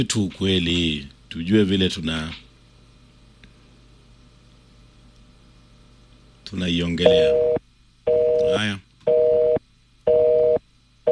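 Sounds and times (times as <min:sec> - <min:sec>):
speech: 0:00.0 - 0:02.5, 0:06.5 - 0:08.9
telephone busy signal: 0:07.0 - 0:11.0.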